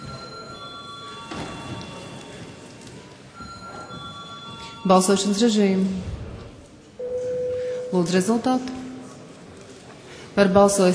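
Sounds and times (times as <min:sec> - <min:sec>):
parliament chamber bell ringing before a vote: 0:00.0 - 0:02.6, 0:03.4 - 0:05.6
speech: 0:04.8 - 0:06.2, 0:07.9 - 0:08.8, 0:10.4 - 0:10.9.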